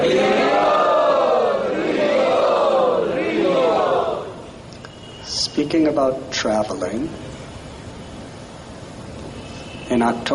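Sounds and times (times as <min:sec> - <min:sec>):
crowd loudly chanting: 0:00.0 - 0:04.6
speech: 0:05.7 - 0:07.3, 0:10.0 - 0:10.3.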